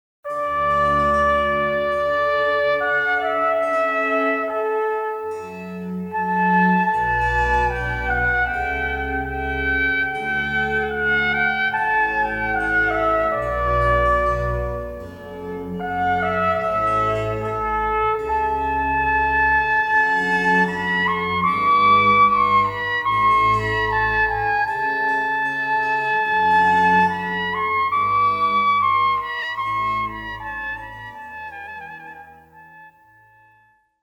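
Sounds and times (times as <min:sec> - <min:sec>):
trumpet concerto: 0:00.3 - 0:33.8.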